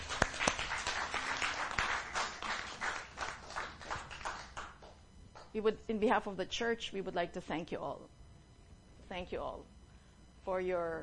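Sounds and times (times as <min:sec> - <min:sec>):
audience clapping: 0:00.0 - 0:05.5
speech: 0:05.6 - 0:08.2, 0:09.1 - 0:09.8, 0:10.4 - 0:11.0.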